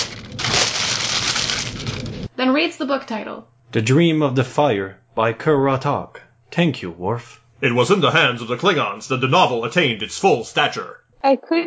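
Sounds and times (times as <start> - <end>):
wrapping paper being ripped in half: 0.0 - 2.3
speech: 2.4 - 11.6.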